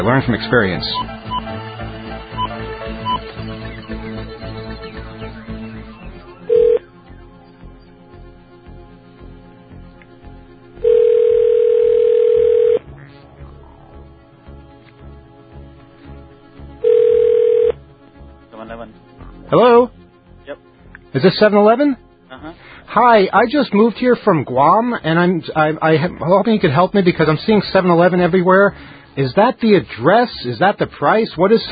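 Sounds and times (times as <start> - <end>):
speech: 0.0 - 1.2, 21.2 - 22.0, 22.9 - 31.7
buzzy telephone ringing tone: 5.9 - 6.9, 10.8 - 12.9, 16.8 - 17.8.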